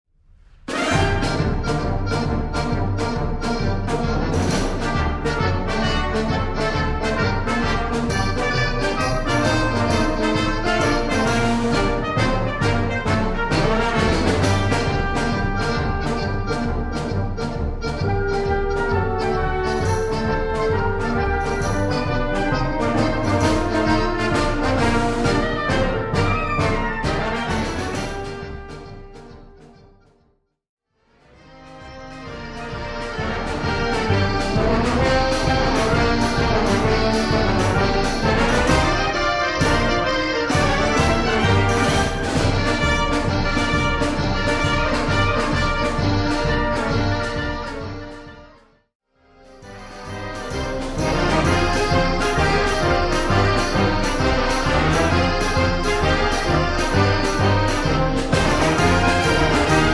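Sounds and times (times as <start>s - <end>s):
band playing a tarantella: 0.7s - 29.8s, 31.4s - 48.6s, 49.4s - 59.9s.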